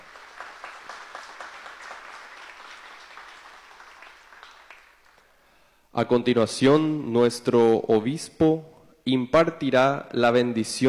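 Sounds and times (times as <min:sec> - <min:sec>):
audience applause: 0:00.0 - 0:05.4
speech: 0:06.0 - 0:10.8.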